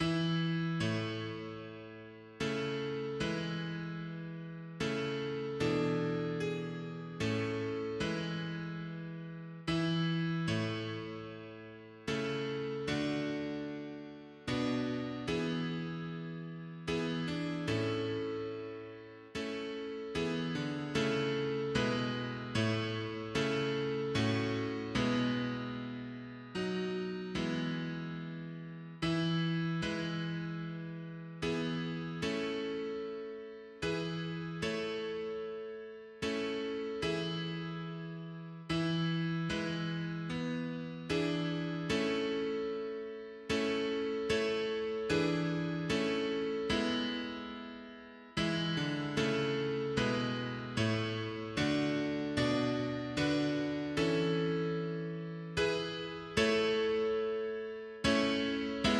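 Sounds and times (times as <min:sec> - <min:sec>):
mono piano playing hymns: 0:00.0 - 0:58.9.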